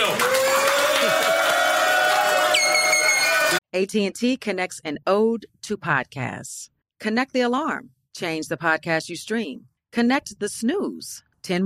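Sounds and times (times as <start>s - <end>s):
crowd cheering and shouting: 0.0s - 3.6s
speech: 3.8s - 11.6s.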